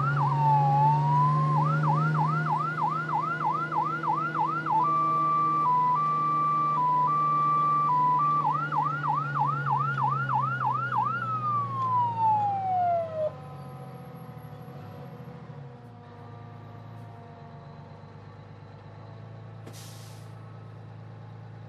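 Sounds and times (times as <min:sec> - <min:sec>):
fire truck driving heard from the cockpit: 0:00.0 - 0:21.6.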